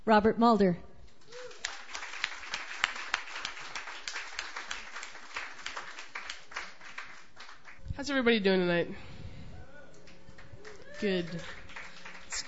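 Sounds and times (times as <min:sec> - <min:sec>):
speech: 0:00.1 - 0:01.4, 0:08.0 - 0:09.1, 0:11.0 - 0:11.6
audience applause welcoming a performer at an open mic night: 0:01.3 - 0:07.8, 0:09.8 - 0:12.4.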